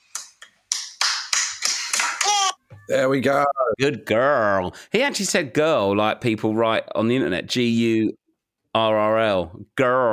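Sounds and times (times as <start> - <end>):
small child clapping hands: 0.1 - 2.6
speech: 2.9 - 10.1.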